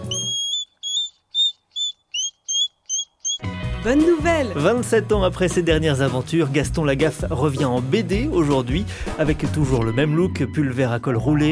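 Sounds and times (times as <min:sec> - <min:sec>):
hedgehog squeaking: 0:00.0 - 0:03.5
speech: 0:03.8 - 0:11.5.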